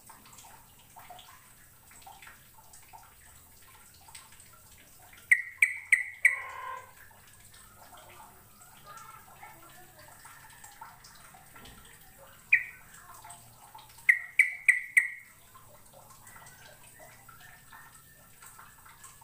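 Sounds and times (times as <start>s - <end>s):
bird chirping: 5.2s - 6.9s, 12.4s - 12.9s, 14.0s - 15.4s.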